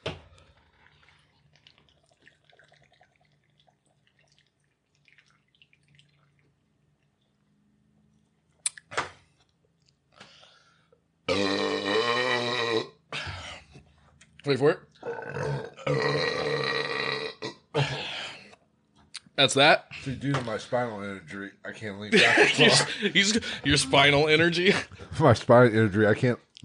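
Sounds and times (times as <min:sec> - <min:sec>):
person chugging beer: 0:11.3 - 0:13.3, 0:15.0 - 0:18.3
speech: 0:14.5 - 0:14.8, 0:19.4 - 0:26.6
laughter: 0:22.1 - 0:23.9.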